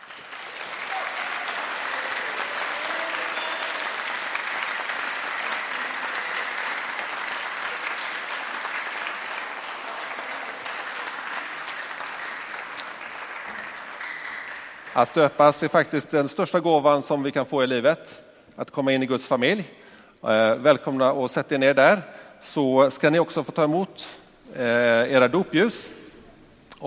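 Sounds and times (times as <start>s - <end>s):
audience applause: 0.0s - 15.7s
speech: 15.0s - 26.0s.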